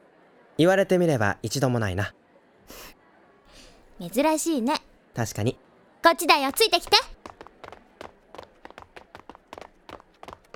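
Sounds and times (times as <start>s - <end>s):
speech: 0.6s - 2.8s, 4.0s - 7.2s
running footsteps: 6.0s - 10.5s.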